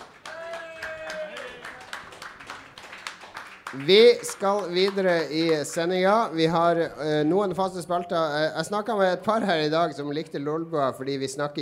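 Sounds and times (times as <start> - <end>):
audience applause: 0.0 - 6.2
vocal cheer: 0.2 - 2.0
speech: 3.7 - 11.6.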